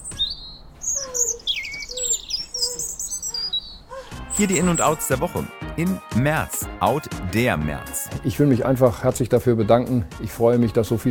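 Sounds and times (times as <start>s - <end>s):
birds chirping in the morning: 0.0s - 8.2s
speech: 4.4s - 11.1s.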